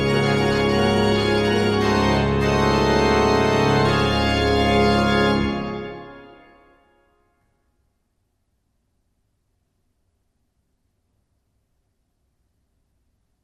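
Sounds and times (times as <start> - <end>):
full organ prelude: 0.0 - 6.9.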